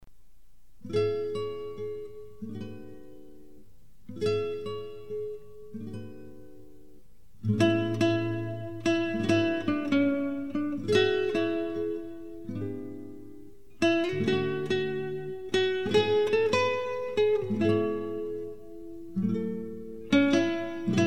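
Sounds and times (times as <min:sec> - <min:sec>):
guitar: 0:00.8 - 0:21.0.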